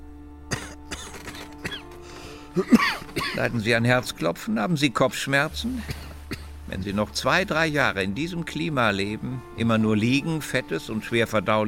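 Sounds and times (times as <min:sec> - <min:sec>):
cough: 0:00.5 - 0:01.9, 0:02.6 - 0:03.5, 0:05.8 - 0:06.5
speech: 0:02.6 - 0:06.0, 0:06.7 - 0:11.6.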